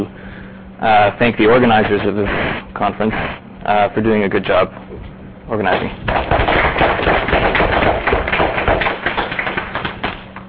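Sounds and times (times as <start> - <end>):
speech: 0.8 - 6.5
audience applause: 6.5 - 10.2.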